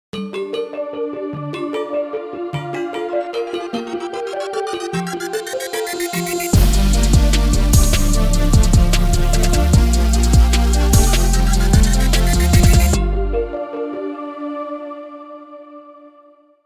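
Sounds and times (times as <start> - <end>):
suspense thriller movie music: 1.9 - 14.6.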